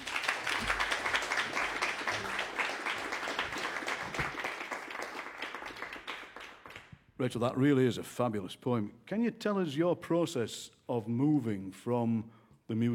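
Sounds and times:
audience applause: 0.0 - 6.9
speech: 7.2 - 12.9.

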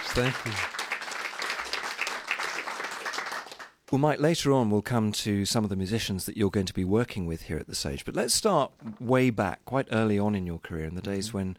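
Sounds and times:
audience applause at the Gateshead International Jazz Festival at the Sage: 0.0 - 3.8
speech: 0.2 - 0.8, 3.9 - 11.5.

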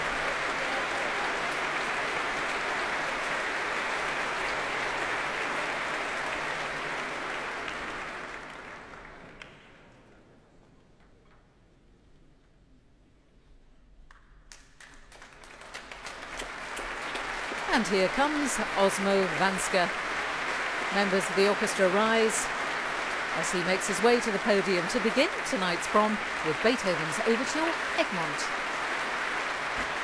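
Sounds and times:
concert audience applause: 0.0 - 10.1, 14.5 - 30.0
speech: 17.8 - 20.1, 20.9 - 22.6, 23.4 - 28.7.

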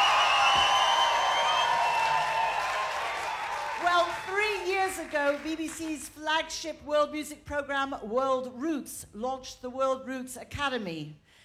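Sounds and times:
shrill whistles: 0.0 - 3.6
festival crowd cheering at Radio 3 stage: 0.0 - 5.8
speech: 5.0 - 11.2.

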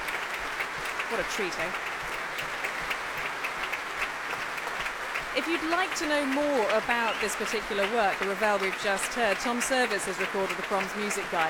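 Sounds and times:
concert audience applause: 0.0 - 11.4
speech: 1.1 - 2.6, 5.4 - 11.4.

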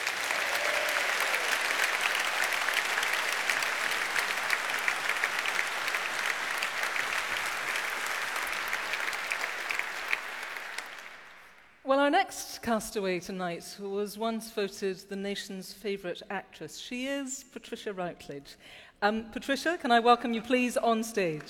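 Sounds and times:
sustained applause from a large audience: 0.0 - 11.8
speech: 12.1 - 21.4.

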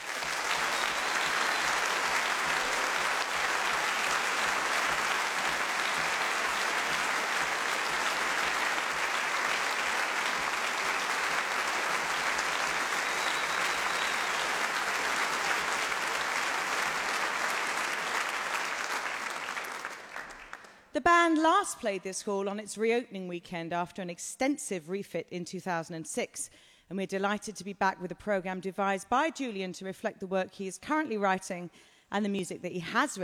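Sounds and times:
audience at a big band jazz concert applauding to welcome the conductor: 0.0 - 20.8
speech: 21.0 - 33.2.

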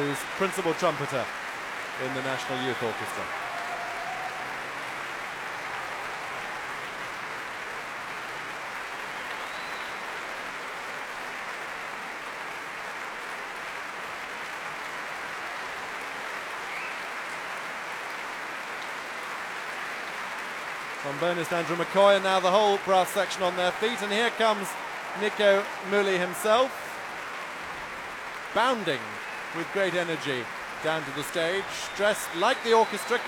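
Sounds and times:
speech: 0.0 - 3.4, 21.1 - 26.8, 28.5 - 33.2
concert audience cheers: 0.0 - 11.4, 19.2 - 33.2
large concert audience applause: 0.0 - 33.2.

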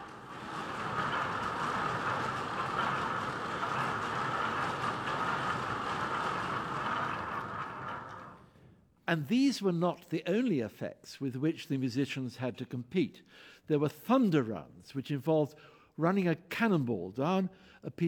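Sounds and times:
theatre wave machine with turning wooden wheels: 0.0 - 8.5
speech: 9.1 - 18.0.

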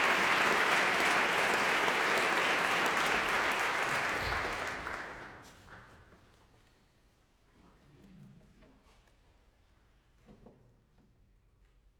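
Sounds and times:
audience applause: 0.0 - 5.5.

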